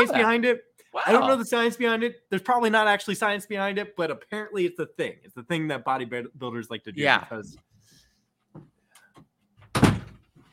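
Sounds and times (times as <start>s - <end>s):
speech: 0.0s - 7.7s
door banging shut: 9.6s - 10.3s.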